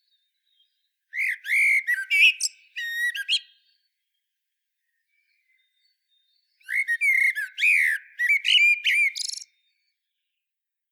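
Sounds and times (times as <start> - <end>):
common blackbird singing: 0.4 - 3.8, 5.4 - 9.7.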